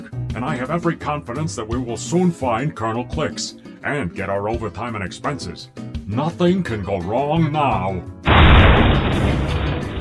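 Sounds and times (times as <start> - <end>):
speech: 0.4 - 9.4
engine falling out crashing: 8.3 - 9.9.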